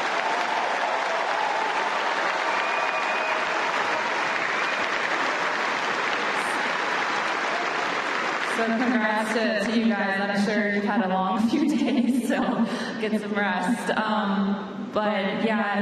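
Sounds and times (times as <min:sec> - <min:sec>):
audience applause: 0:00.0 - 0:09.4
speech: 0:08.6 - 0:15.7.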